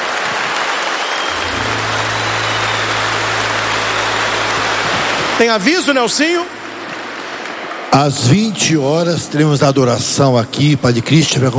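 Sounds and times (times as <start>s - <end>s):
audience applauding the couples: 0.0s - 8.7s
speech: 5.4s - 6.6s, 7.9s - 11.5s.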